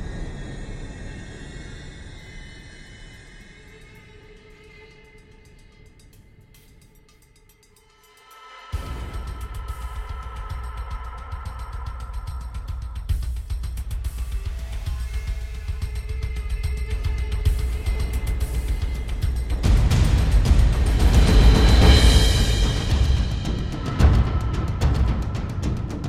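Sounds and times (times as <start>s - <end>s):
drum effects: 8.7s - 26.0s.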